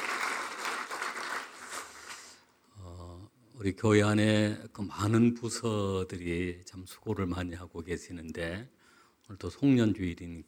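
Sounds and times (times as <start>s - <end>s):
audience applause: 0.0s - 2.2s
speech: 3.6s - 10.4s.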